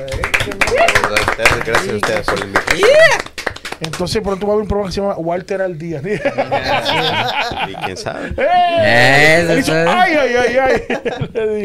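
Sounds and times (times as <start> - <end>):
applause: 0.0 - 4.4
speech: 0.0 - 11.6
laughter: 6.1 - 11.6.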